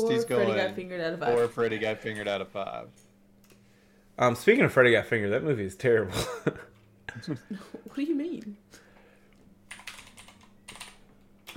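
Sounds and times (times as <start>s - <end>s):
speech: 0.0s - 3.1s, 4.2s - 8.8s
low steady hum: 0.0s - 11.5s
clicking of computer keyboard keys: 9.7s - 11.5s.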